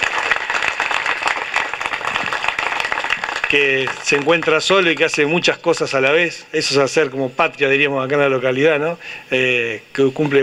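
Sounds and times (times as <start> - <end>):
audience applause: 0.0 - 5.4
speech: 3.5 - 10.4.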